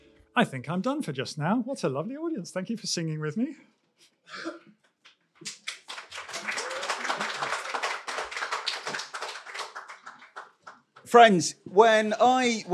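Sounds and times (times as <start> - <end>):
speech: 0.4 - 4.7, 11.1 - 12.7
concert audience applause: 5.4 - 11.1.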